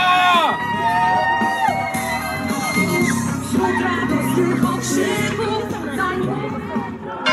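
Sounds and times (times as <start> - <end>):
crowd applause: 0.0 - 7.2.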